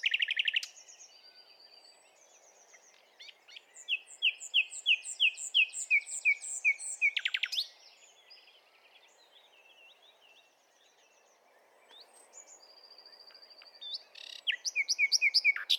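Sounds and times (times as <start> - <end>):
Common nightingale Luscinia megarhynchos singing whistled notes and rattling trill: 0.0 - 15.7.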